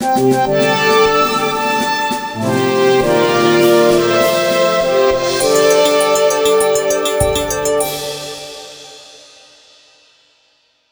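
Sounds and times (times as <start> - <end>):
fanfare: 0.6 - 8.9.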